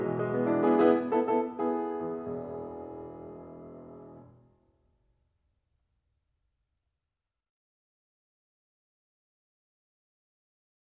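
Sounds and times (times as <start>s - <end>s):
piano prelude: 0.0s - 4.4s.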